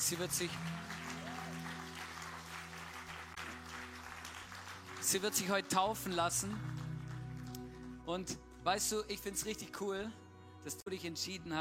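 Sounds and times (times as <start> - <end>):
applause: 0.0 - 8.4
speech: 0.1 - 1.0, 5.1 - 6.8, 8.1 - 11.5.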